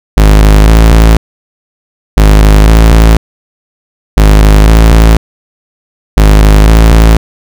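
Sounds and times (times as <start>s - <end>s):
bass: 0.2s - 1.2s, 2.2s - 3.2s, 4.2s - 5.2s, 6.2s - 7.2s.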